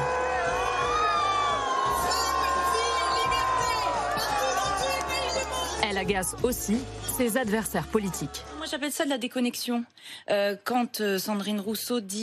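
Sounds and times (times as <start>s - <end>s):
crowd booing at a demonstration: 0.0s - 5.8s
speech: 6.0s - 12.2s.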